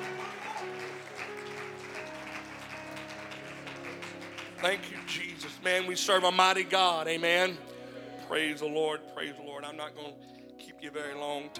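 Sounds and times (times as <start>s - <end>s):
crowd clapping in a large room: 0.0s - 6.4s
speech: 4.6s - 7.7s, 8.3s - 11.5s.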